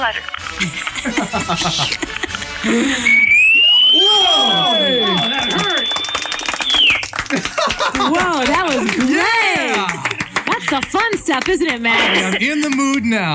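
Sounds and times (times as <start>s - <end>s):
speech: 0.0s - 3.3s, 8.0s - 10.0s, 10.7s - 13.3s
people exclaiming and laughing: 0.4s - 13.3s
Piccolo Pete whistling firework going off: 2.9s - 7.2s.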